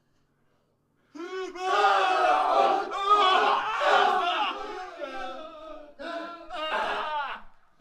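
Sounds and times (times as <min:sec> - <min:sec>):
people crying from behind a wall: 0:01.2 - 0:07.6.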